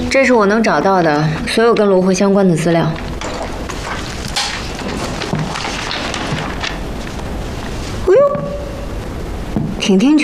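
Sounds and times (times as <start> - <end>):
speech: 0.1 - 3.1, 9.9 - 10.2
wooden chair breaking: 3.0 - 7.0.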